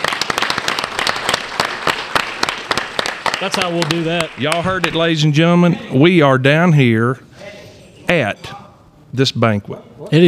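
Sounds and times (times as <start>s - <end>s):
banquet audience applause: 0.0s - 5.1s
speech: 3.4s - 7.3s, 8.1s - 10.2s.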